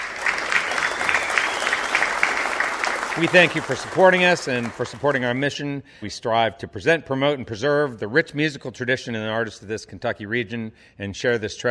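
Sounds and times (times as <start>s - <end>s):
studio audience applauding at a live Kentucky music show: 0.0s - 5.6s
speech: 3.2s - 11.6s.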